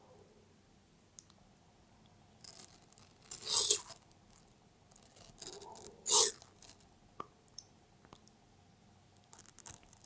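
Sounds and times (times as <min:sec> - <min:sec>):
pet tortoise eating watermelon: 0:02.4 - 0:06.9.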